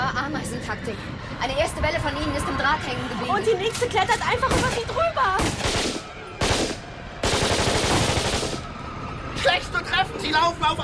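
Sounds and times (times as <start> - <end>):
speech: 0.6 - 6.0, 9.5 - 10.8
machine gun fire: 5.4 - 8.8.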